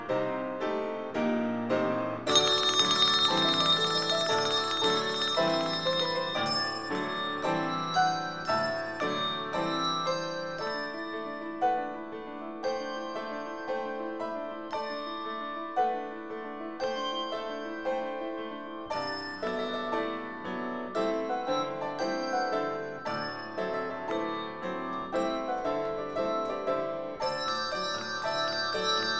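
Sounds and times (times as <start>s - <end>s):
piano: 0.0s - 29.1s
bells: 2.3s - 29.1s.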